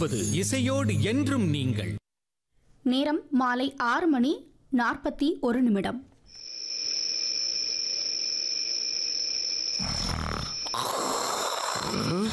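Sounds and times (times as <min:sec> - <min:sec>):
speech: 0:00.0 - 0:02.0, 0:02.8 - 0:06.1, 0:12.0 - 0:12.3
sleeping king snoring in a comedy skit: 0:09.8 - 0:12.3.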